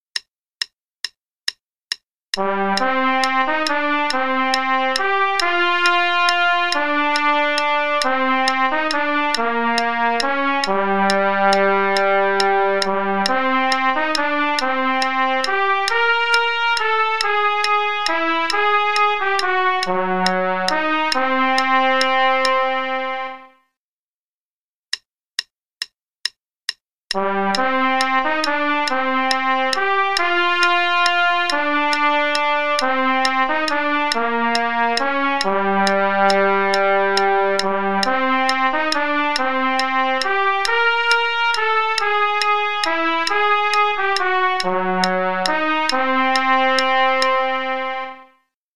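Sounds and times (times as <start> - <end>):
trumpet playing: 2.4 - 23.6, 27.2 - 48.3.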